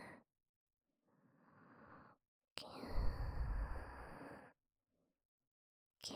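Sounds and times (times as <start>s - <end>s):
person breathing in sleep: 2.9s - 4.3s.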